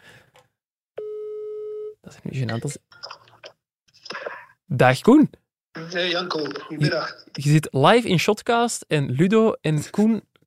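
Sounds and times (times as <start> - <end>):
telephone ringing tone: 1.0 - 1.9
speech: 2.1 - 3.1, 4.7 - 10.3.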